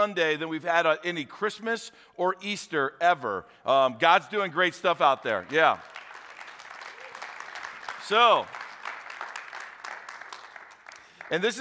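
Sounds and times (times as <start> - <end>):
speech: 0.0 - 6.0, 8.1 - 8.6, 11.3 - 11.5
audience clapping at a church gathering in North Platte: 5.2 - 11.5.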